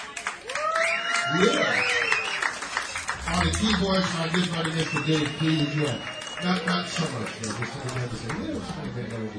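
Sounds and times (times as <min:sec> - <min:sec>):
audience applauding the band: 0:00.0 - 0:09.3
whoops and cheering voices: 0:00.4 - 0:04.0, 0:04.6 - 0:06.9
speech: 0:01.3 - 0:02.0, 0:03.4 - 0:09.3.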